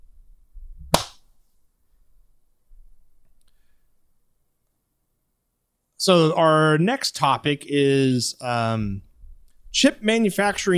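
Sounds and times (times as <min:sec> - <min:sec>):
hand clap: 0:00.9 - 0:01.2
speech: 0:06.0 - 0:09.1, 0:09.8 - 0:10.7.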